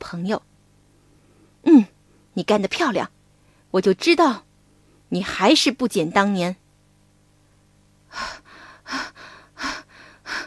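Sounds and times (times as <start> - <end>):
speech: 0.1 - 0.5, 1.7 - 4.4, 5.1 - 6.6
human voice panting heavily for a frog: 8.1 - 10.4.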